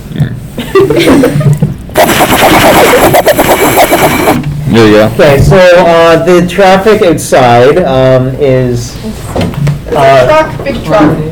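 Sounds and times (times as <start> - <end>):
speech: 0.9 - 1.4, 4.8 - 11.3
voice imitating a helicopter: 2.0 - 4.4.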